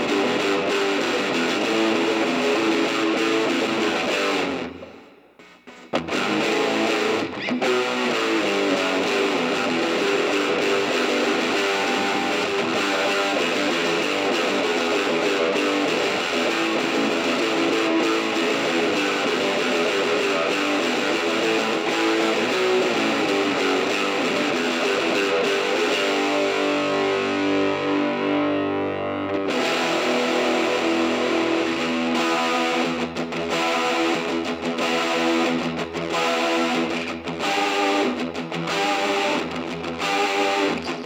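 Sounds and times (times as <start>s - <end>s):
main guitar: 0.0s - 41.0s.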